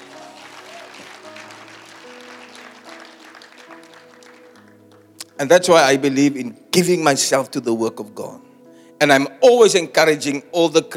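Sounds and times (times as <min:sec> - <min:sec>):
audience clapping: 0:00.0 - 0:05.4
speech: 0:05.4 - 0:10.9.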